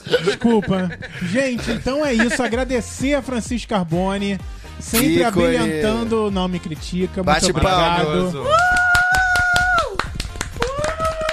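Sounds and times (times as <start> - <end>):
laughter: 0.0 - 2.7
speech: 0.1 - 8.8
audience clapping: 8.4 - 11.3.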